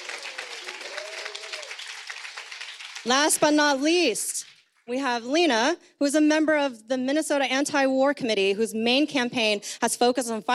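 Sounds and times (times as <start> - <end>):
audience applause: 0.0 - 3.5
speech: 3.0 - 10.5.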